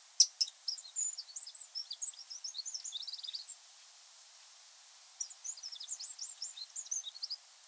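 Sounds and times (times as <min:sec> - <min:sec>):
Eurasian wren song: 0:00.2 - 0:03.6, 0:05.2 - 0:07.4.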